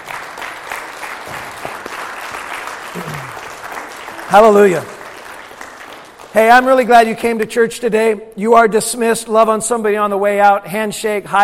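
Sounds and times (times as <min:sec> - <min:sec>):
audience clapping: 0:00.0 - 0:07.4
speech: 0:04.3 - 0:05.0, 0:06.3 - 0:11.4.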